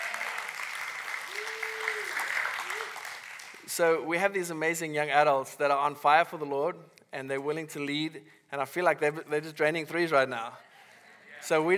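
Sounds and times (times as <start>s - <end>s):
audience applause: 0.0s - 3.6s
speech: 3.8s - 10.7s, 11.4s - 11.7s.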